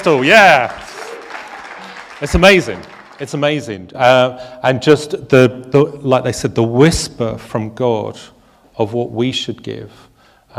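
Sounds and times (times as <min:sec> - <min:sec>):
speech: 0:00.0 - 0:00.8, 0:02.2 - 0:10.5
audience applause: 0:00.0 - 0:03.6.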